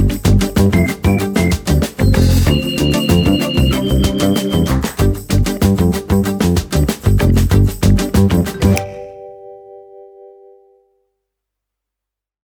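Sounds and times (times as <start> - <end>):
fun show opener music: 0.0 - 9.0.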